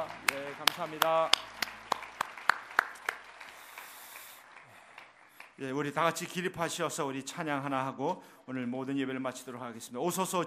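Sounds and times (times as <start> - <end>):
speech: 0.0 - 1.5, 5.6 - 10.4
audience clapping: 0.0 - 6.5.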